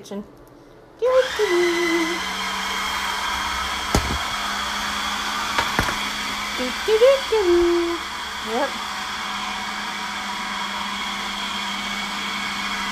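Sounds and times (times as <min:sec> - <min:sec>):
speech: 0:00.0 - 0:00.4, 0:01.0 - 0:02.4, 0:06.6 - 0:08.9
kitchen blender motor running: 0:01.1 - 0:12.9
sharp knocks: 0:04.0 - 0:04.4, 0:05.6 - 0:06.1.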